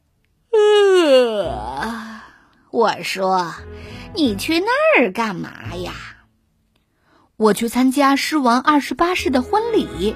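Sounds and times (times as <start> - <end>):
person yawning: 0.5 - 2.4
speech: 1.4 - 2.0, 2.7 - 6.1, 7.4 - 10.1.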